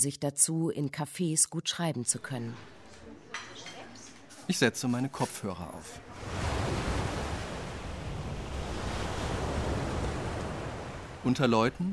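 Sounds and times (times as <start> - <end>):
speech: 0.0 - 2.8, 4.5 - 6.5, 11.2 - 11.9
ocean waves breaking on shore: 5.1 - 11.9.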